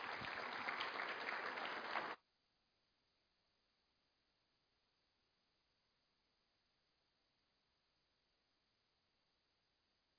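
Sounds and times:
audience applause: 0:00.0 - 0:02.2.

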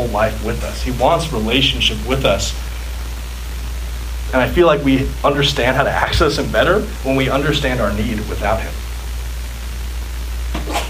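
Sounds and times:
speech: 0:00.0 - 0:02.8, 0:04.3 - 0:08.8
steady low hum: 0:00.0 - 0:10.8
sneeze: 0:10.5 - 0:10.8.

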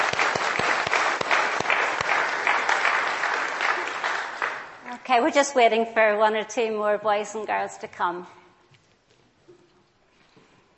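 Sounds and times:
clapping: 0:00.0 - 0:04.8
speech: 0:05.1 - 0:08.4.

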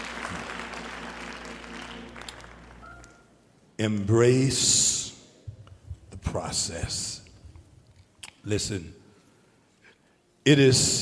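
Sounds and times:
audience clapping hands: 0:00.0 - 0:03.3
speech: 0:03.8 - 0:04.9, 0:06.5 - 0:07.1, 0:08.4 - 0:09.0, 0:10.4 - 0:10.9.

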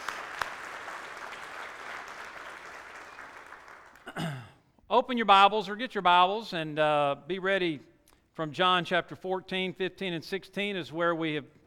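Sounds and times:
audience applause: 0:00.0 - 0:04.2
speech: 0:04.9 - 0:11.6.

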